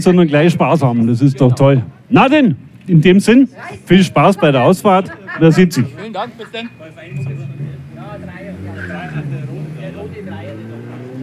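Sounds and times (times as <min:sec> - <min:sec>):
speech: 0:00.0 - 0:10.9
laughter: 0:04.2 - 0:10.0
1988 Mercedes 500 SE Facelift car arriving, engine rumbling: 0:06.8 - 0:11.2.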